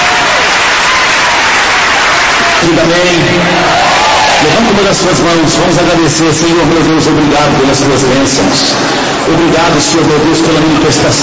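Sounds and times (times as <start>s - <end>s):
church congregation clapping their hands in praise: 0.0s - 4.6s
crowd noise: 0.0s - 11.2s
speech: 2.6s - 3.6s, 4.4s - 11.2s.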